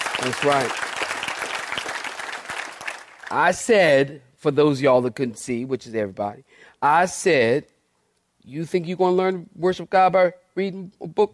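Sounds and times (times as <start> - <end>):
audience clapping hands: 0.0 - 3.7
speech: 0.2 - 0.9, 3.3 - 7.7, 8.4 - 11.3.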